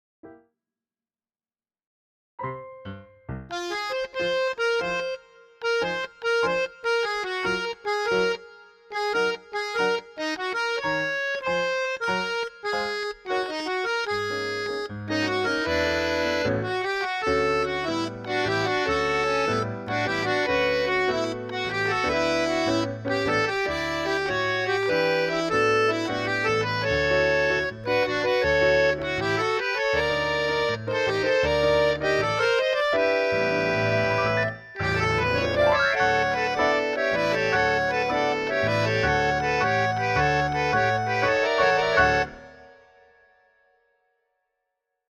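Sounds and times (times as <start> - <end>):
piano: 2.4 - 8.4, 9.0 - 43.0.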